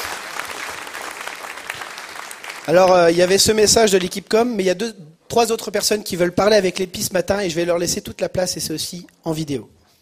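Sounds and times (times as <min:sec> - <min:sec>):
church service audience applauding the communications team: 0:00.0 - 0:03.2
speech: 0:02.6 - 0:09.8.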